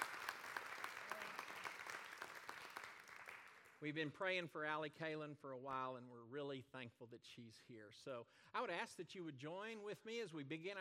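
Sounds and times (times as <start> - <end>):
audience applause: 0.0 - 3.8
speech: 3.8 - 10.7.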